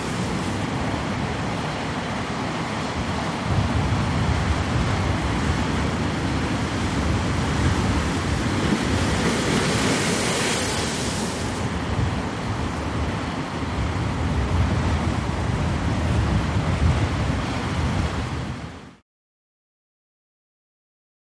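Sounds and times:
storm waves breaking: 0.0s - 19.0s.

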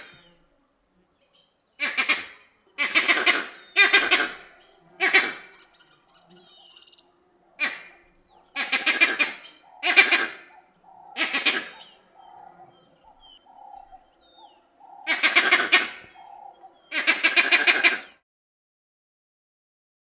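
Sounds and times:
vervet monkey calls: 1.8s - 7.0s, 7.6s - 18.2s.

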